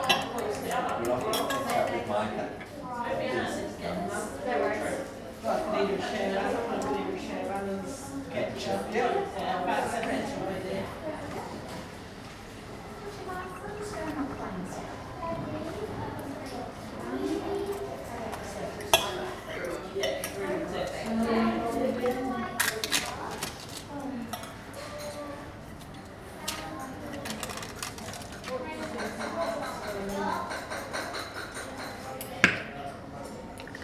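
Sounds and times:
clinks of cutlery, cups and dishes in an English tea room: 0.0 - 1.9, 28.9 - 32.7
hubbub of voices in an English tea room at lunchtime: 0.0 - 33.8.

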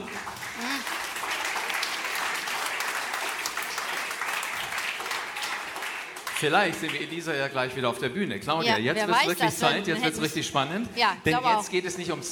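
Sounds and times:
audience applause: 0.0 - 7.5
speech: 6.4 - 12.2.

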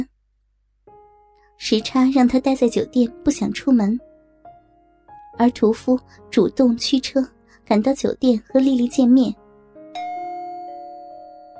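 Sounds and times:
speech: 1.6 - 4.1, 5.4 - 9.4
doorbell ding-dong: 9.9 - 11.5.

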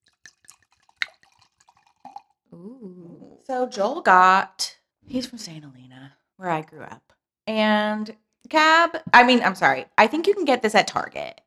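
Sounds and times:
wine pouring into a glass: 0.0 - 2.4
speech: 2.5 - 11.4.

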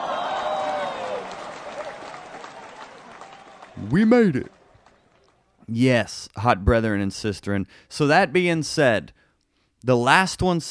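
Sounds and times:
audience applause: 0.0 - 5.5
speech: 3.8 - 4.6, 5.7 - 9.2, 9.8 - 10.6.

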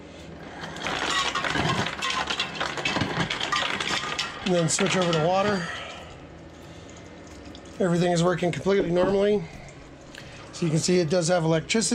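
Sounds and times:
refrigerator dispensing ice: 0.4 - 6.2
speech: 4.5 - 5.8, 7.8 - 9.6, 10.6 - 11.9.

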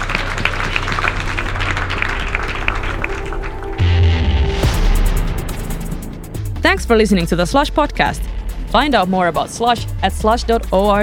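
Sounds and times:
audience applause: 0.0 - 4.6
low sustained tones: 0.0 - 11.0
speech: 6.8 - 11.0.

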